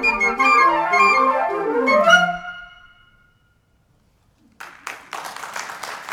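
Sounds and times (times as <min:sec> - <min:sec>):
flute playing: 0:00.0 - 0:03.4.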